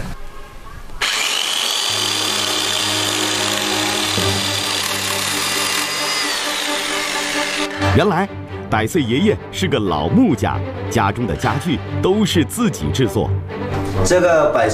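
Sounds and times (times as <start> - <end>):
chainsaw running: 1.0 - 8.0
speech: 8.0 - 14.7.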